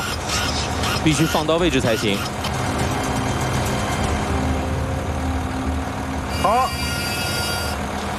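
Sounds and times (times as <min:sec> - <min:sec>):
13.5-tonne tracked excavator engine climbing: 0:00.0 - 0:08.1
speech: 0:01.0 - 0:02.4.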